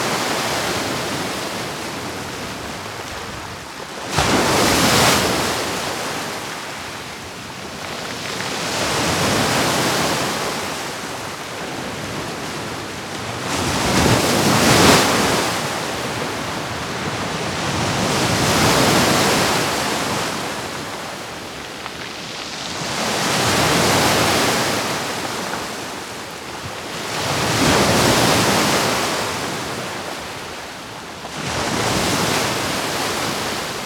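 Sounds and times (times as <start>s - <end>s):
big sea waves: 0.0s - 33.8s.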